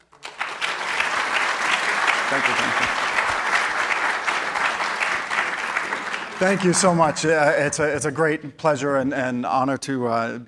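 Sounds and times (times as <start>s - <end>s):
audience applause welcoming a guest speaker at a science lecture: 0.0s - 7.8s
speech: 2.3s - 3.0s, 6.4s - 10.4s.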